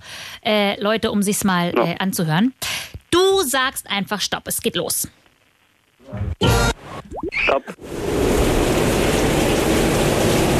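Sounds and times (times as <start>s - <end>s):
speech: 0.4s - 5.2s, 6.1s - 8.2s
storm with wind and rain: 7.8s - 10.5s.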